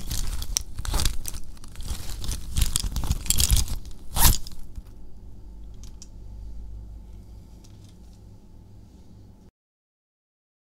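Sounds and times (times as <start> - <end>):
pencil case: 0.0 - 4.9.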